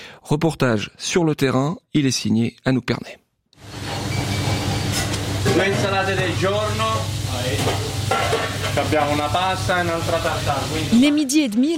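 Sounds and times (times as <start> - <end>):
speech: 0.3 - 3.8, 5.5 - 11.7
guanciale frying in a pan for carbonara in a restaurant kitchen in Geneva: 3.6 - 11.7.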